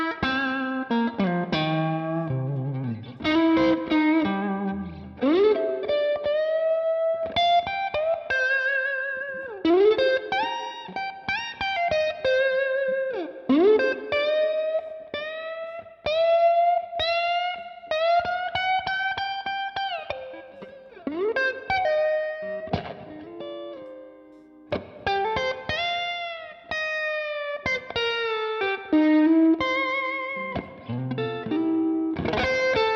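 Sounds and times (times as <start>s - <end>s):
electric guitar with string bends through distortion and chorus effects: 0.0s - 32.9s.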